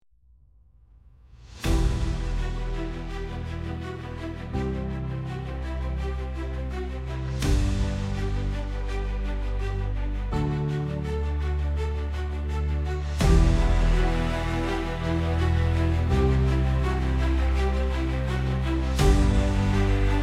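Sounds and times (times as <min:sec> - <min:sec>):
epic music: 0:01.2 - 0:20.2.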